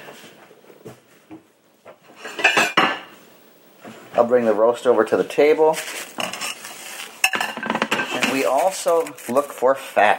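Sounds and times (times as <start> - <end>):
big ceramic plate clattering in a kitchen: 2.2 - 3.1, 7.2 - 8.6
speech: 4.2 - 6.0, 8.4 - 10.1.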